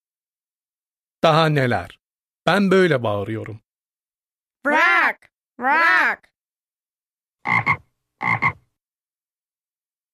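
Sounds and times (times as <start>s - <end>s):
speech: 1.2s - 3.6s, 4.6s - 6.3s, 7.4s - 8.6s
frog croaking: 7.4s - 8.7s.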